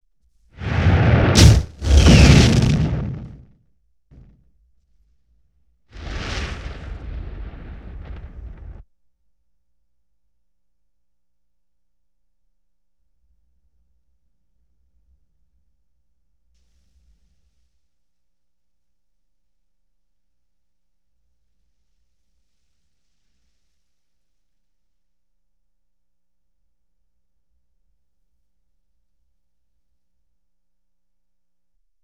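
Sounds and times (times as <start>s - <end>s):
explosion: 0.6s - 3.4s, 6.0s - 8.8s.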